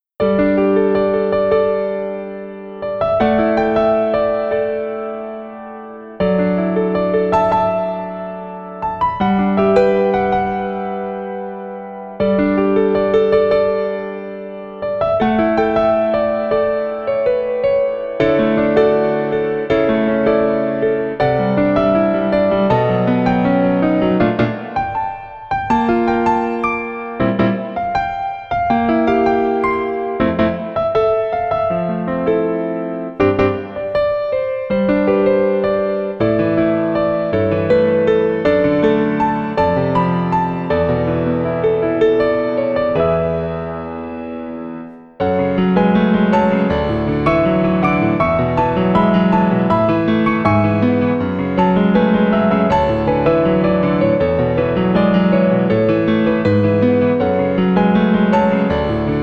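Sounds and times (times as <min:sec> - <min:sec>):
piano: 0:00.0 - 0:59.2.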